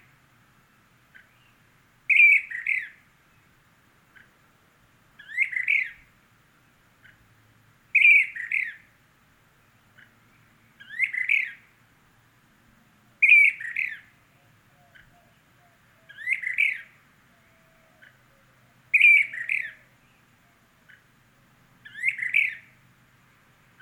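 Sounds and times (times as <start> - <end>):
Brown-crested flycatcher Myiarchus tyrannulus magister calling: 1.1 - 3.1, 5.2 - 6.2, 7.0 - 7.3, 7.9 - 8.9, 9.6 - 11.8, 13.2 - 21.1, 21.8 - 22.8, 23.7 - 23.8.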